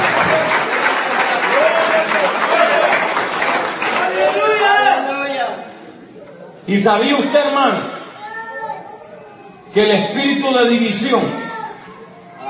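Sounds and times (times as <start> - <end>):
shouts and cheering voices: 0.0 - 3.2, 3.8 - 5.4
large crowd clapping: 0.0 - 5.4
speech: 6.7 - 8.0, 9.8 - 11.4.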